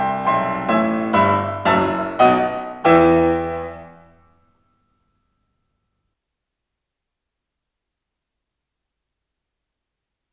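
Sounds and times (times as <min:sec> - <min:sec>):
piano sonata in E major: 0:00.0 - 0:04.6.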